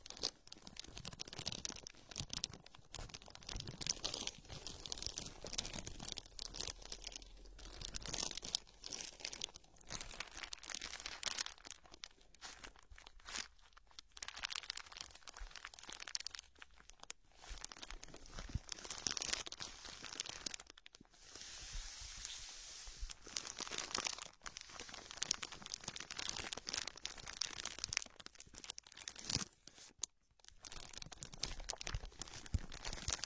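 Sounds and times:
plastic everyday objects crinkling and crunching: 0:00.0 - 0:21.3, 0:22.2 - 0:33.2.

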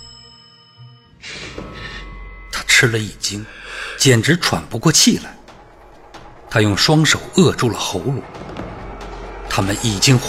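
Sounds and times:
front doorbell ringing urgently: 0:00.0 - 0:03.1
speech: 0:02.8 - 0:05.4, 0:06.5 - 0:08.6, 0:09.6 - 0:10.2.

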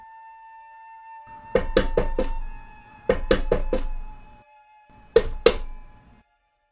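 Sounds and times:
knocking on a door: 0:01.4 - 0:04.4, 0:05.0 - 0:06.0.

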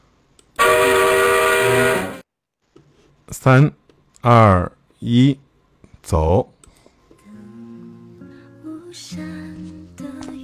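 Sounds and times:
train horn: 0:00.6 - 0:02.2
speech: 0:03.4 - 0:05.4, 0:06.0 - 0:06.5.

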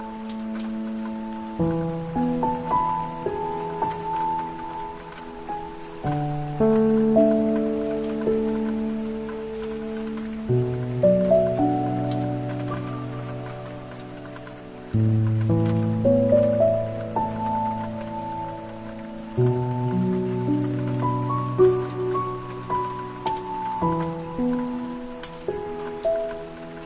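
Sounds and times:
gentle relaxing piano chords: 0:00.0 - 0:26.8.

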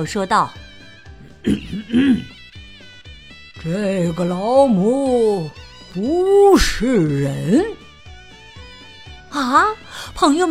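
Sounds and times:
speech: 0:00.0 - 0:00.6, 0:01.4 - 0:02.4, 0:03.6 - 0:07.8, 0:09.4 - 0:10.4
man clearing his throat: 0:01.4 - 0:02.4.

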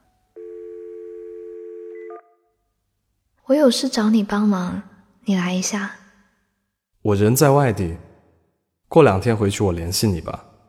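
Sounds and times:
telephone dialing tone: 0:00.4 - 0:02.3
speech: 0:03.5 - 0:06.0, 0:07.0 - 0:08.1, 0:08.9 - 0:10.5.

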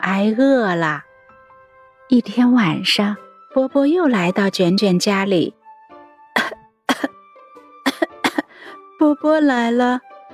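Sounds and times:
speech: 0:00.1 - 0:01.1, 0:02.1 - 0:05.6, 0:09.0 - 0:10.1
repeated coughing: 0:06.4 - 0:07.2, 0:07.8 - 0:08.6.

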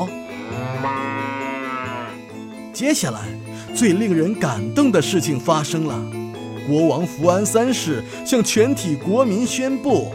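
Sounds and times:
cow mooing: 0:00.1 - 0:02.2
speech: 0:02.8 - 0:10.1.

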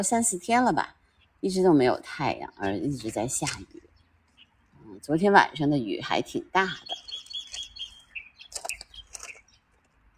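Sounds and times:
speech: 0:00.0 - 0:03.9, 0:05.0 - 0:07.1
light-vented bulbul calling: 0:02.4 - 0:05.2, 0:06.6 - 0:09.8.

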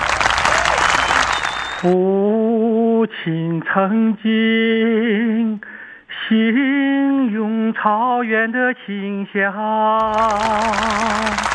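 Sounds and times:
audience applause: 0:00.0 - 0:02.0, 0:10.0 - 0:11.5
speech: 0:01.8 - 0:05.7, 0:06.3 - 0:11.5.

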